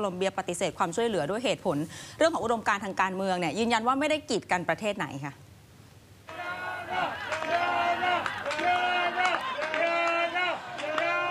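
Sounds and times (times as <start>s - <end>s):
speech: 0.0s - 5.5s
rescue workers cheering after pulling a doctor from rubble: 6.3s - 11.2s.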